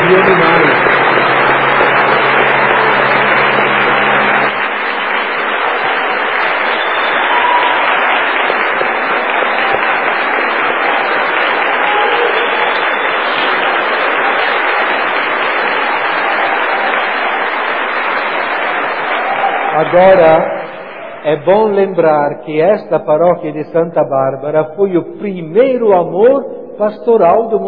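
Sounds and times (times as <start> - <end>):
applause: 0.0 - 22.1
speech: 19.9 - 20.5, 21.2 - 27.6.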